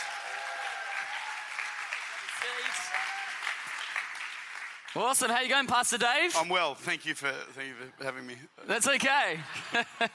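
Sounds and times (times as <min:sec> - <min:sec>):
audience whoops and cheers: 0:00.0 - 0:03.6
audience applause welcoming a pastor to the stage: 0:00.0 - 0:05.1
speech: 0:02.4 - 0:03.3, 0:05.0 - 0:10.1
laughter: 0:09.4 - 0:10.1.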